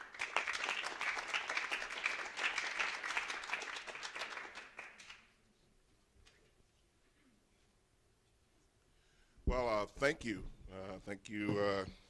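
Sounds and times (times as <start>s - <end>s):
audience applause: 0.0s - 5.2s
speech: 9.5s - 12.0s.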